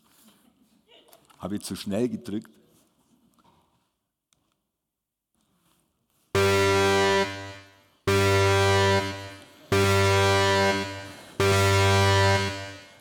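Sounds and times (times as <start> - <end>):
speech: 1.4 - 2.6
alarm horn blasts: 6.4 - 12.9.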